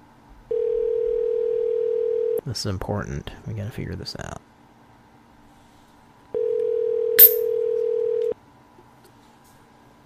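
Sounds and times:
telephone dial tone while calling a number back: 0.5s - 2.4s, 6.4s - 8.4s
speech: 2.5s - 4.4s.

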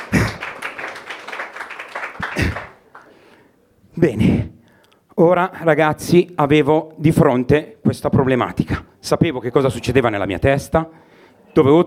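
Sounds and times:
audience applause: 0.0s - 3.2s
speech: 4.0s - 4.5s, 5.2s - 11.8s.

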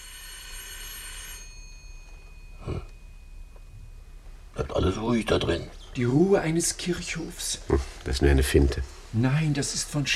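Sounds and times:
doorbell ringing: 0.0s - 4.4s
speech: 4.7s - 10.1s.

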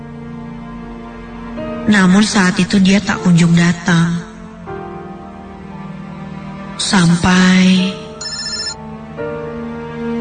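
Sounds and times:
speech: 1.8s - 4.2s, 6.8s - 8.0s
mobile phone ringtone for an incoming call: 8.2s - 8.8s.

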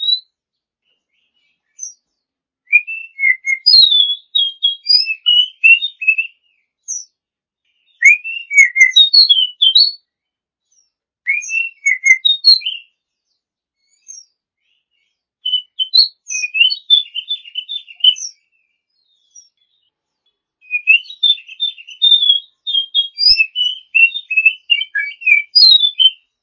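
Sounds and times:
champion Oriental magpie-robin song: 0.0s - 26.4s.

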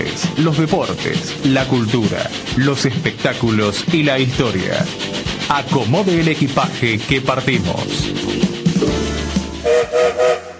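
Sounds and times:
speech: 0.4s - 8.5s
train whistle: 9.6s - 10.5s.

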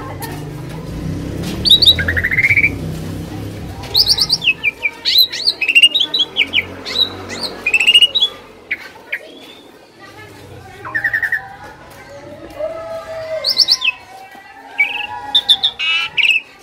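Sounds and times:
Asian pied starling song with whistles, rattles and chatters: 0.0s - 12.4s, 13.0s - 16.6s.

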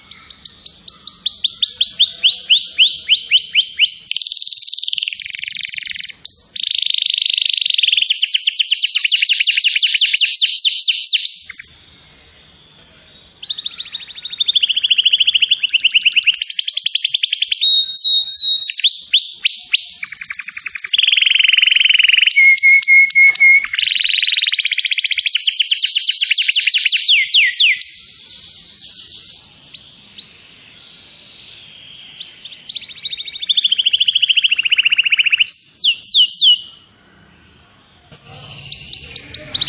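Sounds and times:
canary song: 0.0s - 39.6s.

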